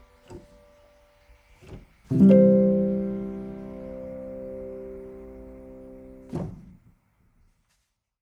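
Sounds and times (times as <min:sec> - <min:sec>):
piano music: 0:00.0 - 0:06.3.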